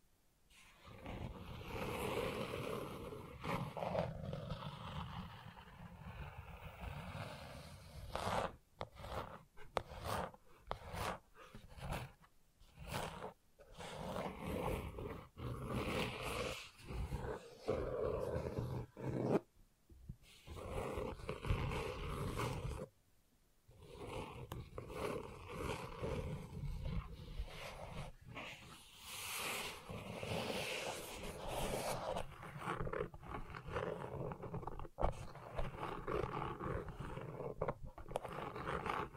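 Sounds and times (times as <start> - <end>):
gentle rough scratching: 0.9 - 19.5, 20.3 - 22.9, 23.7 - 39.1.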